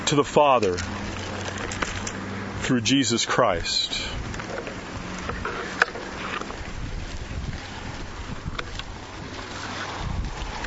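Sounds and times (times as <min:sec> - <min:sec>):
speech: 0:00.1 - 0:01.0, 0:02.7 - 0:04.0
wind blowing outdoors and buffeting the microphone: 0:04.0 - 0:10.6.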